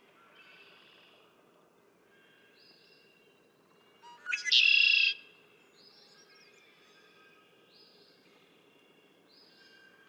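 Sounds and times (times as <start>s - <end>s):
red-winged blackbird song: 4.2s - 5.2s.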